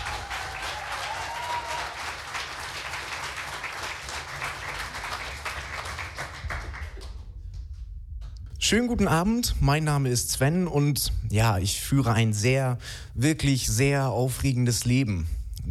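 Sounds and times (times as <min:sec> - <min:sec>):
audience applause welcoming a performer: 0:00.0 - 0:07.3
speech: 0:08.7 - 0:15.4.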